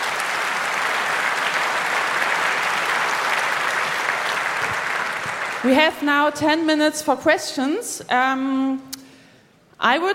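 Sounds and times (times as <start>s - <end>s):
audience applause: 0.0s - 6.2s
speech: 5.6s - 8.9s, 9.8s - 10.1s.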